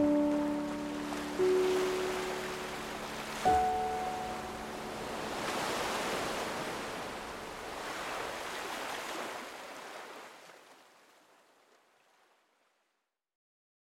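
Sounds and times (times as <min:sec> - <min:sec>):
morning piano music: 0:00.0 - 0:07.7
ocean waves: 0:00.0 - 0:12.6.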